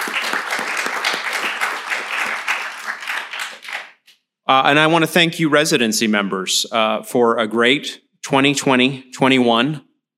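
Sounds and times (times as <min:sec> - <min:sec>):
hand clapping: 0:00.0 - 0:04.2
speech: 0:04.5 - 0:09.9.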